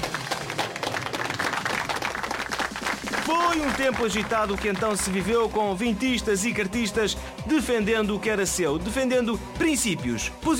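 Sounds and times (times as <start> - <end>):
audience applause: 0.0 - 5.3
speech: 3.3 - 10.5.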